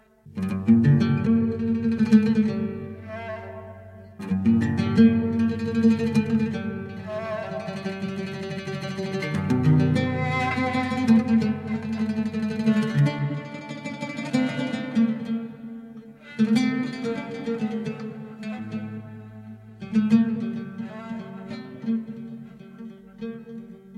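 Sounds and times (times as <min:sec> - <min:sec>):
kamancheh playing: 0:00.0 - 0:23.9.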